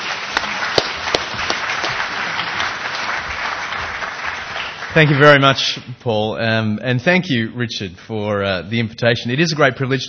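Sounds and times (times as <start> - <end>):
lecture audience applause welcoming the speaker: 0.0 - 5.6
speech: 5.0 - 10.0.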